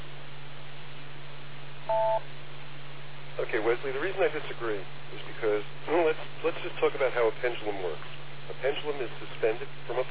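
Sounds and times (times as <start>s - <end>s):
steady low hum on a telephone line: 0.0s - 10.1s
two-toned call-in phone-line beep tone: 1.9s - 2.2s
speech: 1.9s - 2.5s, 3.4s - 10.1s.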